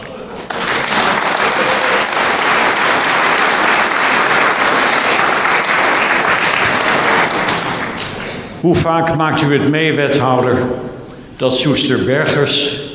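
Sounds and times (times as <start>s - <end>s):
audience applause: 0.0s - 8.6s
speech: 8.6s - 12.9s.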